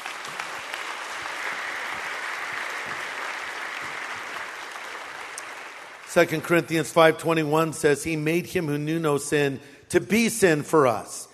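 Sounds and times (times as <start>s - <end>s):
audience applause: 0.0s - 6.6s
speech: 6.1s - 11.3s.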